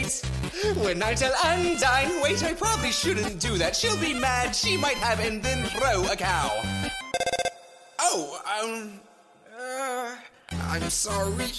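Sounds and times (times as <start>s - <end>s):
speech: 0.1s - 7.0s, 8.2s - 9.8s, 10.7s - 11.5s
phone ringing in the video game Undertale: 6.5s - 8.0s.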